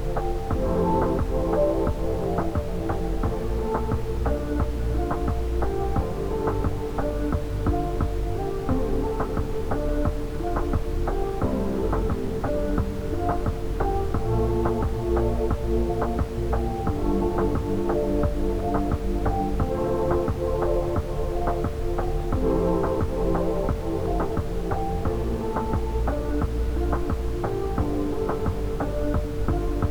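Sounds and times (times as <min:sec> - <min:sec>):
ambient music for chakra meditation: 0:00.0 - 0:29.8.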